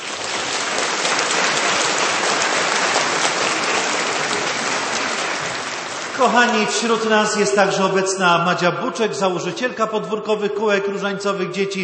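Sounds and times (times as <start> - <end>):
audience applause: 0.0 - 8.2
speech: 6.2 - 11.8.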